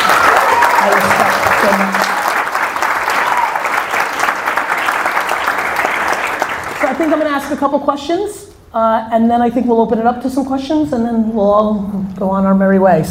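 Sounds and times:
crowd clapping: 0.0 - 7.6
speech: 7.4 - 13.0.

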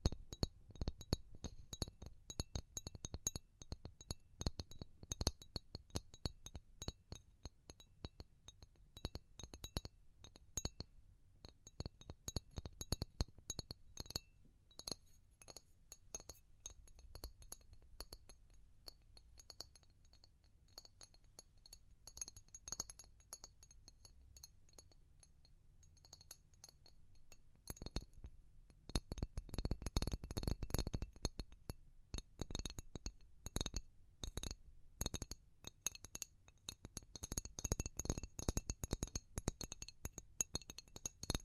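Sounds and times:
fast and slow glassy tapping: 0.0 - 28.2, 28.8 - 41.4.

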